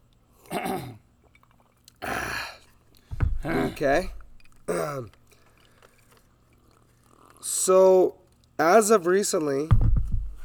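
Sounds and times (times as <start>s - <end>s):
throat clearing: 0.4s - 1.0s, 2.0s - 5.2s
speech: 3.4s - 5.2s, 7.6s - 9.9s.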